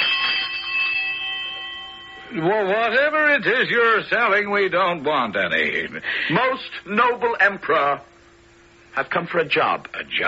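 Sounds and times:
castle bell ringing: 0:00.0 - 0:04.0
speech: 0:02.3 - 0:08.1, 0:09.0 - 0:10.2.

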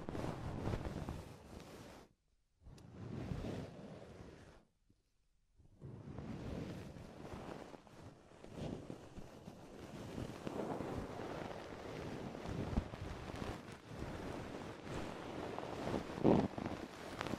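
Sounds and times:
ear exploration muffled rubbing and rustling on microphone: 0:00.0 - 0:02.2, 0:02.8 - 0:04.7, 0:05.8 - 0:17.3.

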